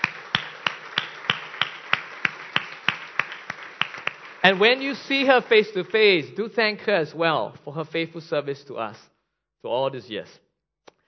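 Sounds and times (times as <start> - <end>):
audience applause: 0.0 - 6.8
faint hiss: 0.0 - 10.5
speech: 4.4 - 10.4.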